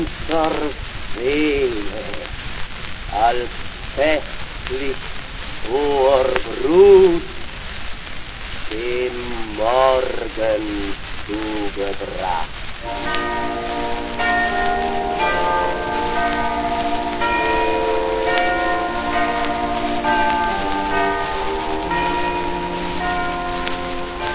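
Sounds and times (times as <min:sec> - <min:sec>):
speech: 0:00.0 - 0:02.3, 0:03.1 - 0:07.4, 0:08.7 - 0:13.7
steady droning hum: 0:00.0 - 0:24.3
church bells pealing: 0:12.2 - 0:24.3.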